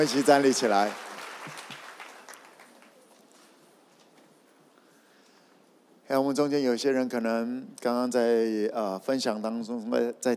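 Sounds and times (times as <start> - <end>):
speech: 0.0 - 1.6, 6.1 - 10.3
audience applause: 0.0 - 3.2.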